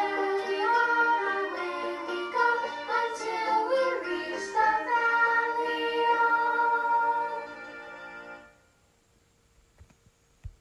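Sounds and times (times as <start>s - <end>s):
vocals: 0.0s - 8.0s.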